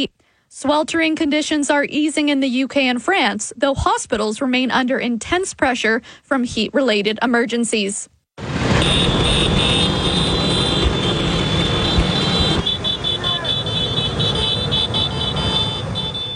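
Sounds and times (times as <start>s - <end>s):
speech: 0.0s - 9.6s
Vespa scooters riding through ancient Roman streets: 8.5s - 16.3s.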